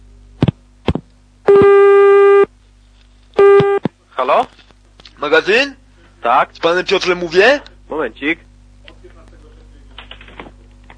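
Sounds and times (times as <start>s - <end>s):
telephone tone while call is transferred: 1.5s - 2.5s, 3.4s - 3.8s
speech: 4.2s - 4.6s, 5.2s - 8.5s.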